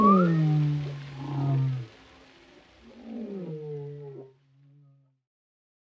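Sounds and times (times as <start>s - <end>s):
whale song moans: 0.0s - 2.0s, 2.8s - 5.0s.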